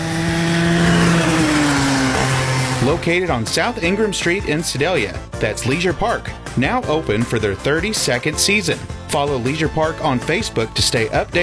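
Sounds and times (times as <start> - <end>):
go-kart engine circling a racetrack at a leisure park: 0.0 - 4.0
speech: 2.9 - 11.4.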